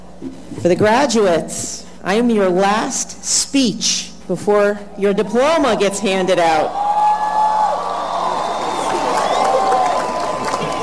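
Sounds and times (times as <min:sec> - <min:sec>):
speech: 0:00.2 - 0:06.8
audience cheering: 0:05.8 - 0:10.8
audience clapping: 0:07.8 - 0:10.8.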